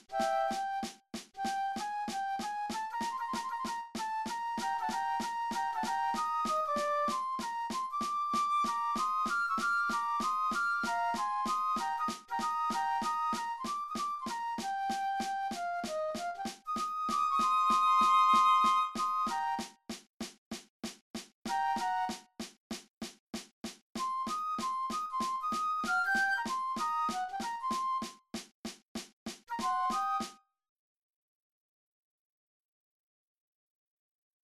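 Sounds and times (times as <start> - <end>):
flutes playing gospel tune in cut time: 0.2 - 19.7, 21.5 - 22.2, 24.0 - 28.1, 29.5 - 30.4.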